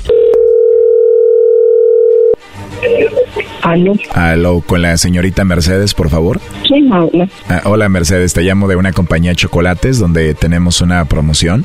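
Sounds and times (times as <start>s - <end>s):
telephone ringing tone: 0.0s - 2.4s
telephone line noise: 0.0s - 3.1s
voices: 2.8s - 11.6s
speech: 3.7s - 11.6s.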